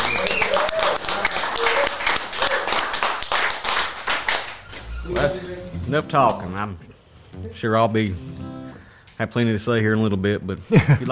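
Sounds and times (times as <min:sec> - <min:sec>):
round of applause: 0:00.0 - 0:05.3
speech: 0:05.2 - 0:08.5, 0:09.2 - 0:11.0.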